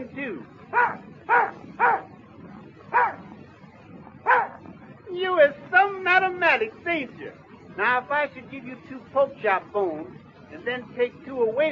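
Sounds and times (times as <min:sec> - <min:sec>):
low steady hum: 0:00.0 - 0:11.6
dog barking: 0:00.7 - 0:02.1, 0:02.9 - 0:03.2, 0:04.3 - 0:04.6
speech: 0:07.8 - 0:11.6.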